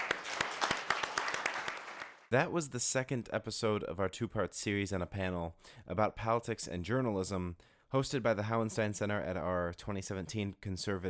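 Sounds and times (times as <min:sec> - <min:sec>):
audience applause: 0:00.0 - 0:02.3
speech: 0:02.3 - 0:11.0.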